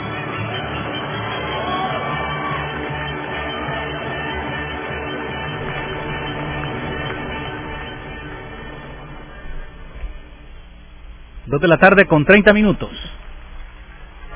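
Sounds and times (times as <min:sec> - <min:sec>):
applause for a dance team: 0:00.2 - 0:08.4
speech: 0:11.5 - 0:13.1.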